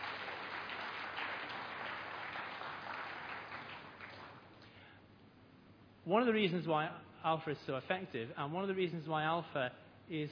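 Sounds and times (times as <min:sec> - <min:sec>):
audience applause: 0:00.0 - 0:04.5
speech: 0:06.0 - 0:10.3.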